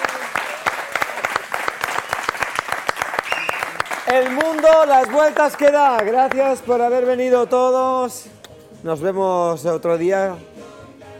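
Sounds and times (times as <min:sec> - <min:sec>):
audience applause: 0:00.0 - 0:07.2
speech: 0:04.1 - 0:10.5.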